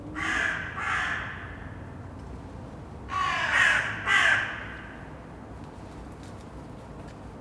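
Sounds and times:
crow cawing: 0.2s - 2.1s, 3.1s - 5.5s.

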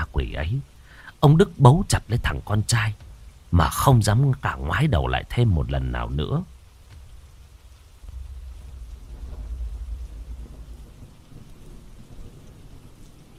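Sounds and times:
steady rain at a funeral: 0.0s - 13.3s
speech: 0.3s - 6.5s
deep, rolling rumble of thunder: 6.5s - 13.3s.

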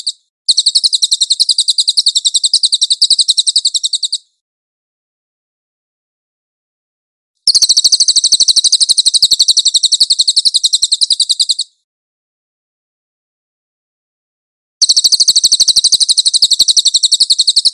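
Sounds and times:
velvet-fronted nuthatch chattering trill: 0.0s - 4.3s, 7.5s - 11.8s, 14.8s - 17.7s.

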